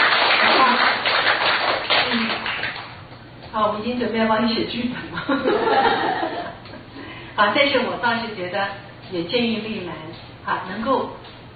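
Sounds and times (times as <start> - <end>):
group clapping hands: 0.0 - 3.0
speech: 3.8 - 6.5, 7.4 - 11.4
laughter: 5.2 - 6.8.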